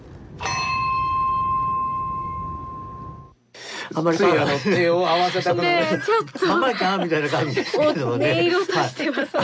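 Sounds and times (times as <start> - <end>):
small bell on a hill struck once: 0.4 - 3.4
speech: 3.9 - 9.4
laughter: 4.2 - 9.4.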